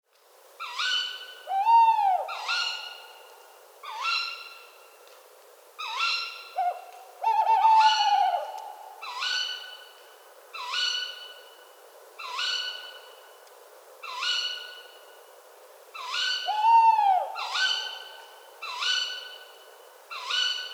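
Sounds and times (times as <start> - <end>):
tawny owl pair giving shrill upslurred ke-wick calls in a park in France: 0.6 - 3.2, 3.8 - 4.7, 5.8 - 9.9, 10.6 - 11.4, 12.2 - 13.1, 14.0 - 15.0, 16.0 - 20.7.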